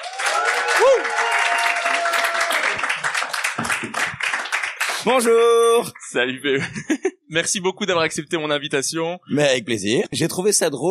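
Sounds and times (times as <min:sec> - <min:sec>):
audience applause: 0:00.0 - 0:05.2
speech: 0:05.0 - 0:10.8.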